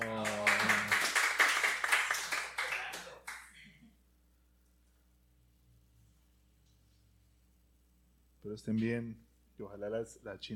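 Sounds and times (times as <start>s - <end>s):
scattered hand clapping from a small group: 0.0s - 3.6s
speech: 8.5s - 10.5s.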